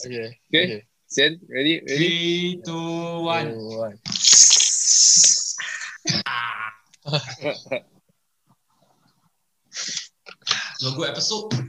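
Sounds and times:
speech: 0.0 - 4.6, 6.2 - 8.0, 10.8 - 11.6
voice imitating a can opening: 4.1 - 5.7.

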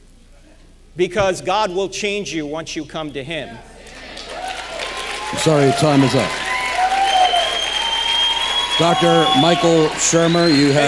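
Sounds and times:
speech: 1.0 - 3.7, 5.3 - 6.4, 8.8 - 10.8
audience cheering and applause: 3.8 - 10.8.

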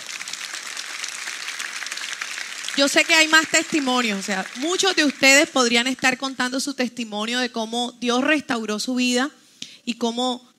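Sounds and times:
audience applause: 0.0 - 6.0
speech: 2.8 - 10.5.

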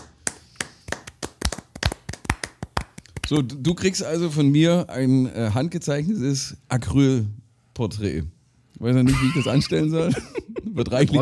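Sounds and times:
hand clapping: 0.0 - 3.5
speech: 3.3 - 11.2
laughter: 9.1 - 11.2.

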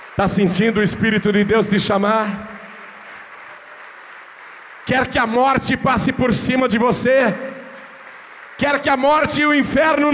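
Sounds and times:
audience applause: 0.0 - 10.1
speech: 0.2 - 2.6, 4.9 - 7.6, 8.6 - 10.1.

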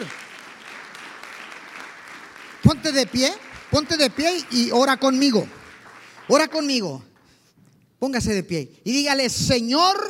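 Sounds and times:
audience applause: 0.0 - 6.7
speech: 2.7 - 5.6, 6.3 - 7.1, 8.0 - 10.0.

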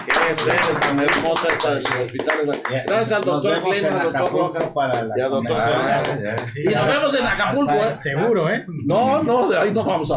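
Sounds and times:
applause: 0.0 - 5.1, 6.0 - 6.6
speech: 0.3 - 10.1.

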